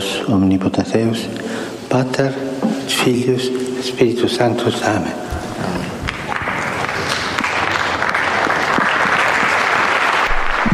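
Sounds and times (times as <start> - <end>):
speech: 0.2 - 6.0
loud applause from the audience: 5.6 - 10.7.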